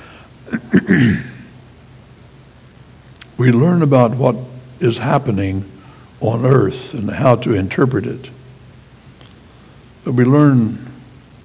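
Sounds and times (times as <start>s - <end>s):
person coughing: 0.5s - 1.5s
speech: 0.8s - 1.3s, 3.4s - 8.4s, 10.0s - 10.9s.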